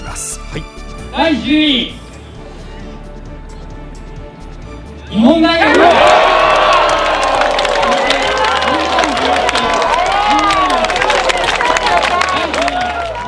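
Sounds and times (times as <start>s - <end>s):
speech: 0.2s - 2.0s, 5.1s - 6.0s
crowd cheering at the Hakone Ekiden qualifying race: 5.3s - 13.2s
people shouting at the Hakone Ekiden qualifying race: 5.4s - 13.2s.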